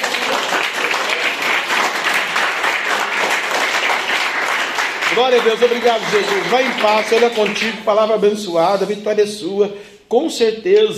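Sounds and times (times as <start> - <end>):
audience applause: 0.0 - 7.8
speech: 5.2 - 10.9.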